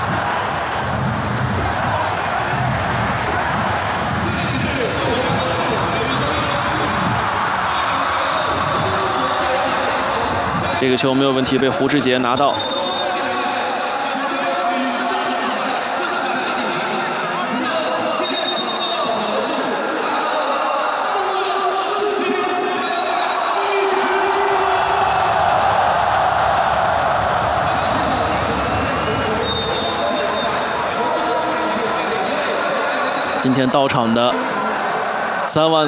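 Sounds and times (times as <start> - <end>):
football fans cheering in a stadium: 0.0 - 35.8
speech: 10.8 - 12.8, 33.6 - 34.5, 35.5 - 35.8.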